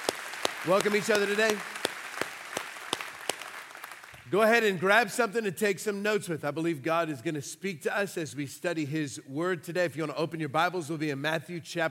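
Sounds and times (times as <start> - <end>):
church congregation applauding during a service: 0.0 - 4.8
speech: 0.6 - 1.8, 4.3 - 11.8.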